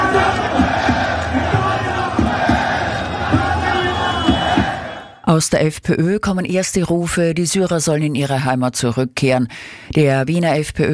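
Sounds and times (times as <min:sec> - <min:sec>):
loud crowd shouting at street demonstration: 0:00.0 - 0:05.2
speech: 0:05.3 - 0:10.9.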